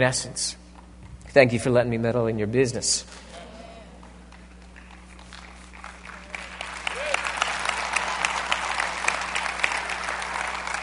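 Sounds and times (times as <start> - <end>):
speech: 0.0 - 0.6, 1.3 - 3.4
audience applauding: 4.0 - 10.8.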